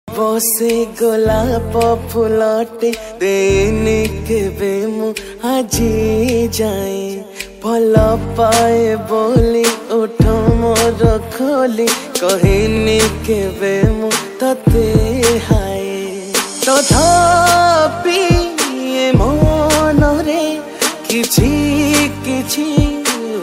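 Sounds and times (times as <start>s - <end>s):
Odia romantic song: 0.1s - 23.4s.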